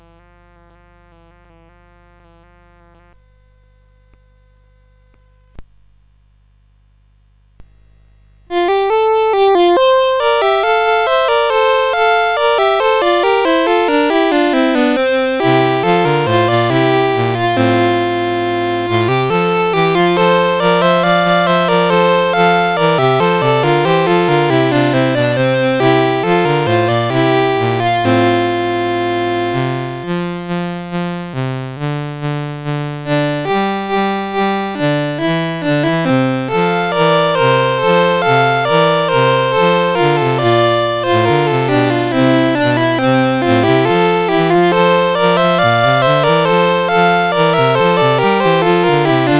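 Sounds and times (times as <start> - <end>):
CSG 8580 sound chip: 8.5 - 49.3.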